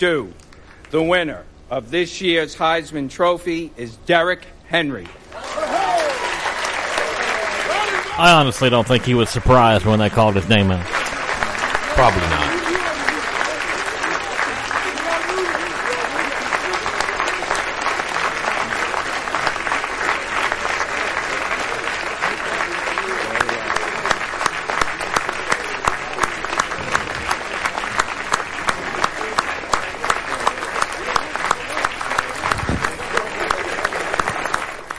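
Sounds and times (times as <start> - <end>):
speech: 0.0 - 5.8, 8.2 - 11.0, 12.0 - 12.3
large audience applause: 5.3 - 34.9
crowd murmur: 7.3 - 34.8.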